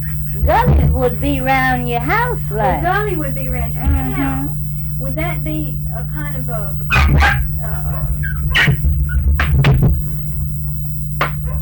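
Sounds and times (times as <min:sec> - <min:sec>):
steady low hum: 0:00.0 - 0:11.6
speech: 0:01.0 - 0:08.8
dog whimpering and yipping: 0:06.9 - 0:08.8.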